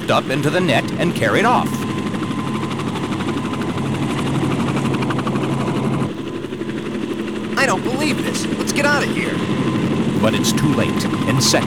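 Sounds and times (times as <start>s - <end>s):
jet helicopter flying overhead: 0.0s - 11.6s
speech: 0.1s - 1.8s, 7.6s - 11.6s.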